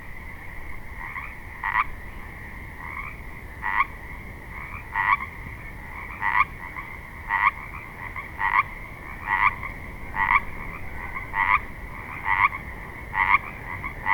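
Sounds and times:
frogs trilling chorus: 0.3s - 14.1s.

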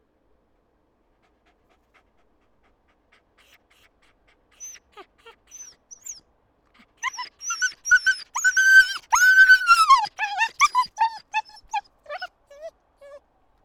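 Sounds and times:
dog yelping and whimpering with high-pitched cries: 4.6s - 6.2s, 6.8s - 13.2s.

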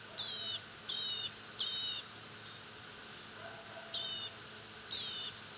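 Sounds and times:
Blue-gray gnatcatcher giving thin high nasal buzzy calls: 0.2s - 2.1s, 3.9s - 4.4s, 4.9s - 5.4s.

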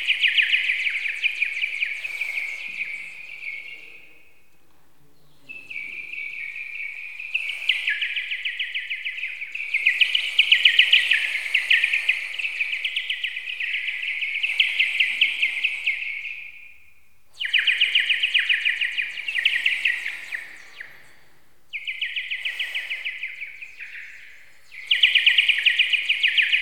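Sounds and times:
bird chirping: 0.0s - 26.6s.

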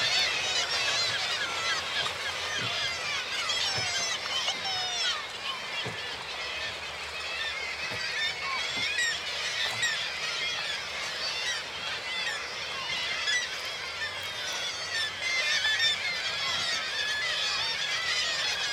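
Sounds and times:
gulls calling: 0.0s - 18.7s
water lapping: 0.0s - 18.7s.

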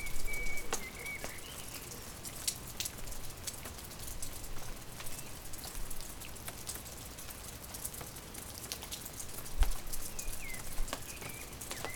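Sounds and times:
bird singing: 0.0s - 1.8s
continuous rain: 0.0s - 11.9s.

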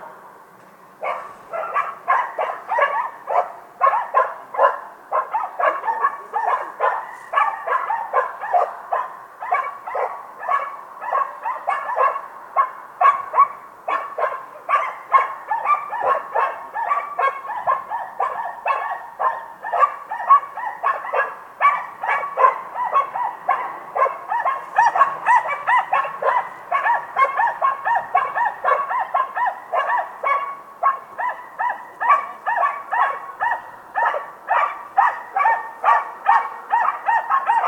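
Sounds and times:
several dogs barking: 1.0s - 37.6s.

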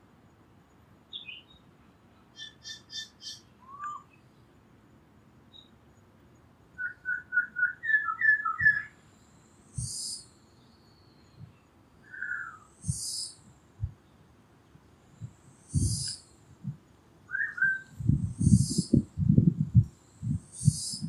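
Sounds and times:
bird chirps: 1.1s - 1.6s, 2.3s - 4.3s, 5.5s - 5.7s, 6.8s - 9.0s, 9.8s - 13.4s, 15.6s - 16.3s, 17.3s - 19.0s, 20.2s - 21.0s.

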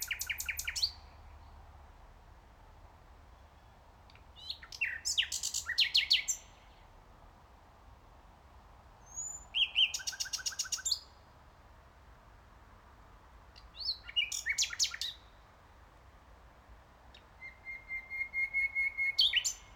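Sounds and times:
common nightingale singing: 0.0s - 1.6s, 3.4s - 6.9s, 9.0s - 11.2s, 13.5s - 15.4s, 17.1s - 19.7s.

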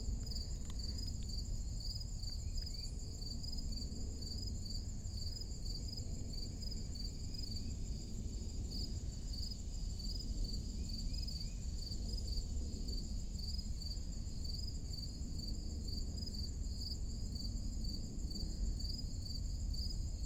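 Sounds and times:
crickets chirping in a forest clearing on a summer morning: 0.0s - 20.2s.

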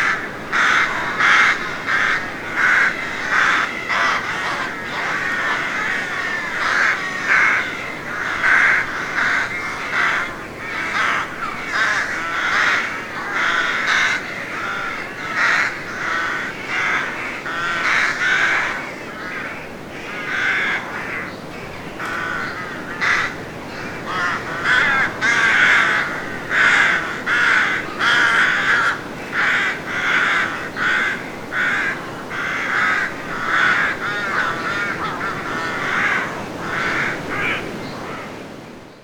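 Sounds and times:
rooks cawing: 0.0s - 38.6s.

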